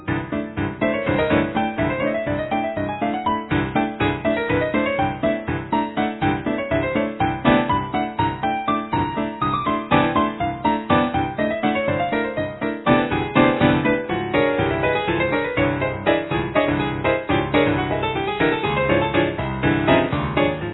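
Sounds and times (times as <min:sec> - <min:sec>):
grand piano playing forte: 0:00.0 - 0:20.7.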